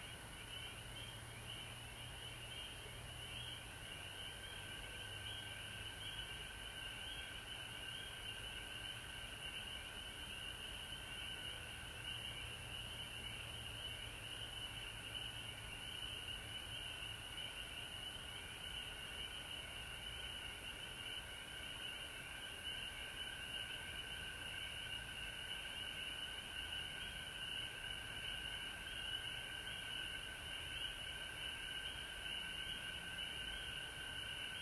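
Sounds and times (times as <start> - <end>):
frog chorus trilling: 0.0 - 34.6.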